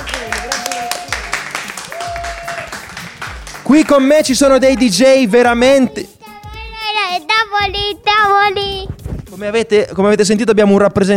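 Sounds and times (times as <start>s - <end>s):
crowd clapping: 0.0s - 5.3s
voices cheering: 0.0s - 5.8s
drawn-out whoops: 0.5s - 2.8s
speech: 3.7s - 6.1s, 7.2s - 11.1s.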